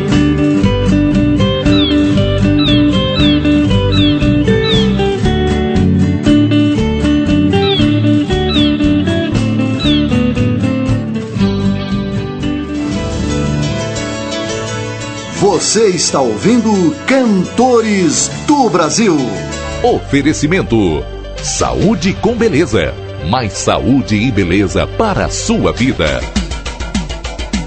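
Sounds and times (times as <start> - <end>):
full band music: 0.0 - 26.6
seagull cries: 1.6 - 5.2, 7.6 - 10.2
speech: 15.7 - 26.4.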